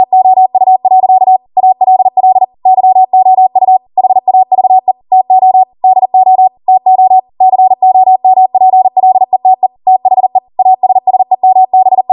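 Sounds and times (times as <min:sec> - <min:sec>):
Morse code practice beeps: 0:00.0 - 0:12.1.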